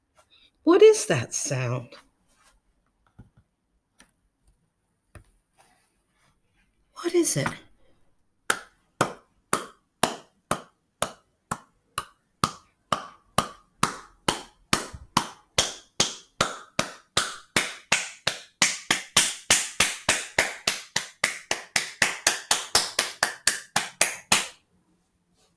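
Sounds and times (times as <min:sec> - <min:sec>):
speech: 0:00.6 - 0:02.0, 0:07.0 - 0:07.6
hands clapping: 0:08.5 - 0:24.6.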